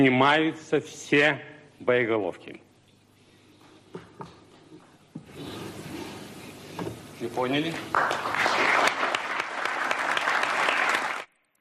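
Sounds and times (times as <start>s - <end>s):
speech: 0.0s - 2.6s, 7.2s - 8.8s
loud prolonged applause: 7.9s - 11.3s.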